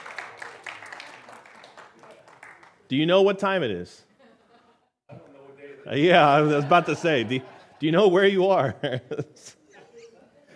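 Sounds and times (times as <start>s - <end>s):
faint applause for a returning traveling missionary: 0.0s - 2.8s
speech: 2.9s - 4.1s, 5.9s - 9.6s
laughter: 4.1s - 5.0s, 5.7s - 10.5s.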